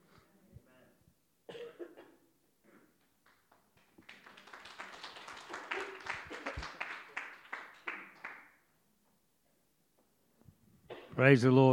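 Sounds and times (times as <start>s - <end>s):
audience clapping: 3.0s - 8.6s
speech: 11.2s - 11.7s.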